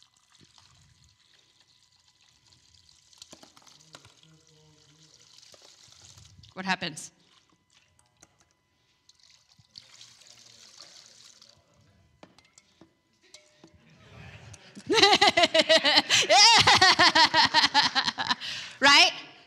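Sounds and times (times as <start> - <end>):
liquid poured into a container until overflowing: 0.0 - 6.6, 7.2 - 11.9
speech: 6.6 - 7.2
laughter: 14.0 - 18.6.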